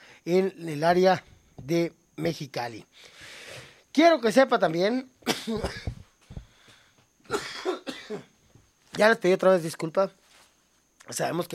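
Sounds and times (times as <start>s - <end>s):
speech: 0.2s - 3.3s, 4.0s - 6.0s, 8.1s - 8.3s, 9.0s - 10.2s, 11.1s - 11.5s
man coughing after illness: 5.2s - 6.1s, 7.3s - 8.4s.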